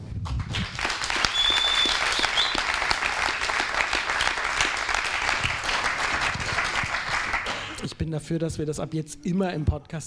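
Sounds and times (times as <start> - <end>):
live audience clapping: 0.2 - 7.9
speech: 8.1 - 10.0.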